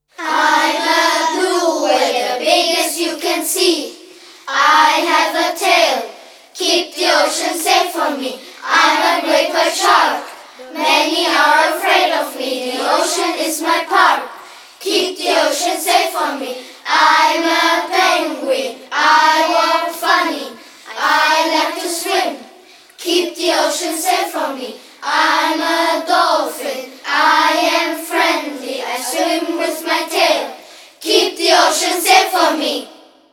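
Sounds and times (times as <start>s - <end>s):
chant: 0.2s - 33.3s.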